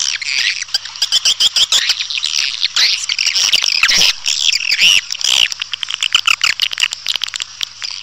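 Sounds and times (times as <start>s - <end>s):
faint low hum: 0.0s - 6.3s
swiftlet twittering: 1.5s - 6.6s
brief deeper squawk: 3.8s - 5.0s.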